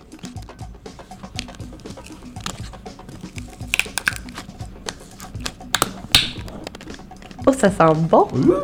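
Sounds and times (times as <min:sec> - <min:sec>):
light clicks and handling rattles of a juice bottle: 0:03.2 - 0:06.9
speech: 0:07.5 - 0:08.6.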